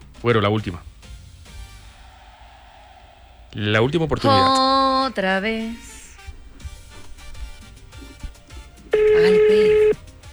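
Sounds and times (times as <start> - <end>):
speech: 0.2 - 0.9, 3.6 - 5.9, 9.2 - 9.8
people talking quietly: 4.2 - 10.0
telephone ringback tone with no answer: 8.9 - 10.0.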